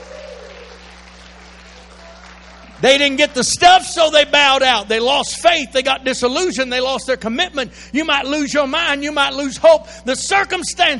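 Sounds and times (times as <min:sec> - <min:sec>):
audience clapping hands: 0:00.0 - 0:03.8
speech: 0:02.8 - 0:10.9.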